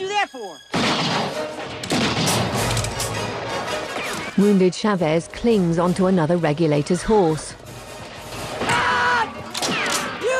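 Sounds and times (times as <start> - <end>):
speech: 0.0 - 1.9, 4.4 - 7.6
gunshots during a western film shootout: 0.7 - 4.4, 9.5 - 10.2.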